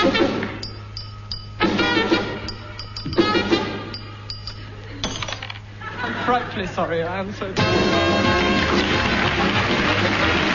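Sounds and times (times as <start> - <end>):
melody played on glasses of water: 0.0 - 5.2
laughter: 5.8 - 7.0
speech: 6.6 - 10.4.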